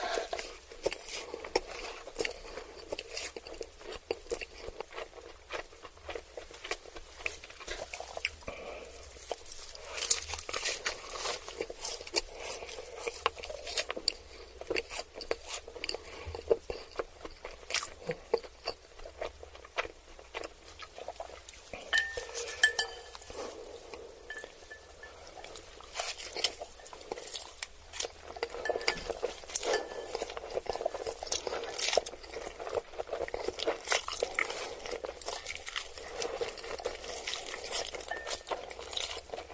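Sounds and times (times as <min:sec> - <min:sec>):
person eating ramen noodles and chicken nuggets, wet chewing and slurping: 0:00.0 - 0:39.5
cutlery clinking against dishes: 0:21.9 - 0:23.3, 0:28.6 - 0:30.4.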